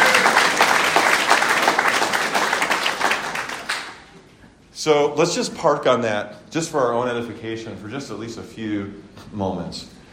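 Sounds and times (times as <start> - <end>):
crowd applauding: 0.0 - 4.2
speech: 4.8 - 10.0.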